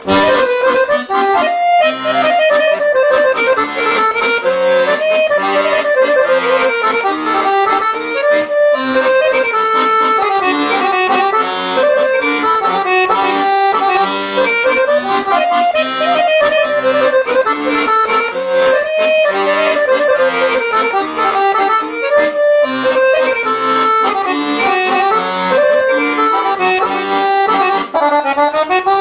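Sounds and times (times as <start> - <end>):
accordion: 0.0 - 29.0.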